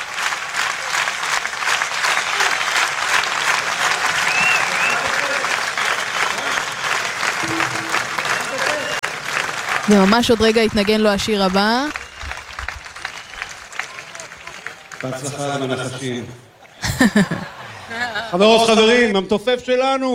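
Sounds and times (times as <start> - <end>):
sustained dense applause from a large standing audience: 0.0 - 17.8
faint crowd voices and cheers: 2.1 - 9.6, 12.0 - 16.8
speech: 9.9 - 12.0, 15.0 - 20.1
laughter: 15.1 - 18.7.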